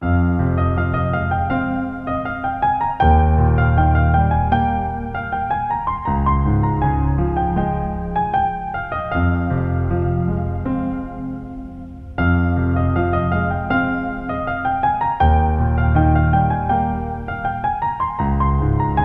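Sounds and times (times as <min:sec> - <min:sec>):
piano ringtone: 0:00.0 - 0:19.0.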